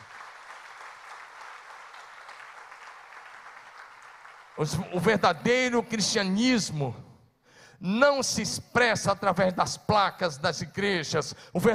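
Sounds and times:
round of applause: 0.0s - 5.1s
speech: 4.6s - 7.0s, 7.8s - 11.7s.

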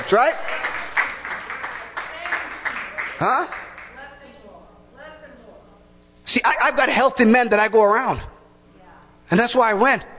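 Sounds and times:
audience clapping hands: 0.0s - 4.2s
speech: 0.1s - 0.7s, 3.2s - 3.6s, 6.3s - 8.3s, 9.3s - 10.1s.

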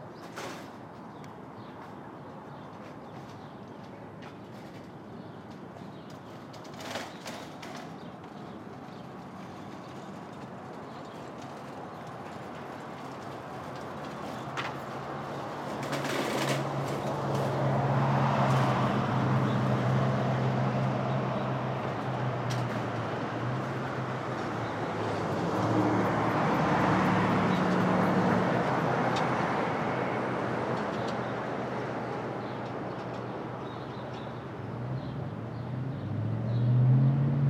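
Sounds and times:
Brooklyn street traffic hum at dawn: 0.0s - 37.4s
vehicles passing: 0.0s - 37.4s.

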